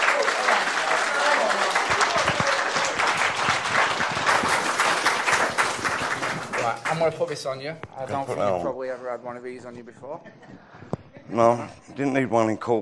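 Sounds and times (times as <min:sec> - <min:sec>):
audience applause: 0:00.0 - 0:07.4
speech: 0:07.1 - 0:12.8.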